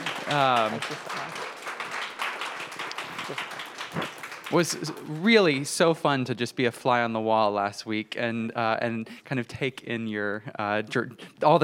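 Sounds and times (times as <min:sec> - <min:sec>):
audience applause: 0:00.0 - 0:05.8
speech: 0:00.3 - 0:01.5, 0:03.3 - 0:11.6.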